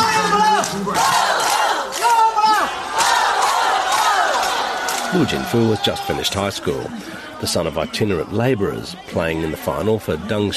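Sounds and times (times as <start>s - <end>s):
crowd of sports fans cheering and shouting: 0.0s - 10.5s
speech: 5.1s - 10.5s.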